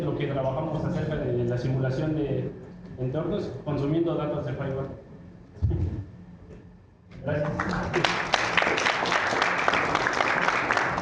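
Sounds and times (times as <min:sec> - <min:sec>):
speech: 0:00.2 - 0:05.0, 0:05.6 - 0:06.1, 0:07.2 - 0:08.9
applause: 0:07.3 - 0:11.0.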